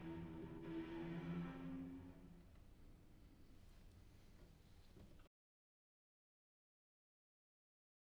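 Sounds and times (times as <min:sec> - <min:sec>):
cello: 0:00.0 - 0:02.8.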